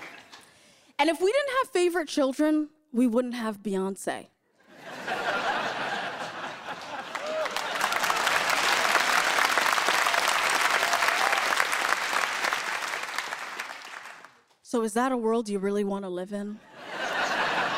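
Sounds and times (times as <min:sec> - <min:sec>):
audience clapping: 0:00.0 - 0:00.5, 0:06.2 - 0:14.5
speech: 0:01.0 - 0:04.3, 0:14.7 - 0:16.7
laughter: 0:04.6 - 0:09.2, 0:16.6 - 0:17.7.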